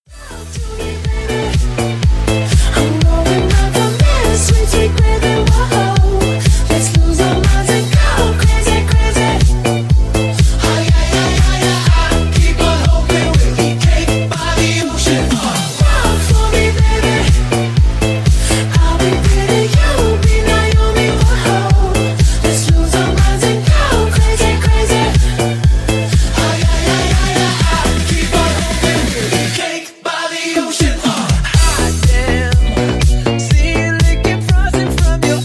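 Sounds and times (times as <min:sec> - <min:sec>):
funky house music mix: 0:00.1 - 0:35.4.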